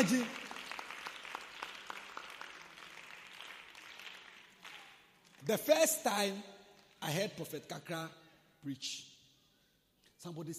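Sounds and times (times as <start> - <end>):
speech: 0.0 - 0.4, 5.4 - 9.1, 10.2 - 10.5
audience clapping: 0.0 - 5.8.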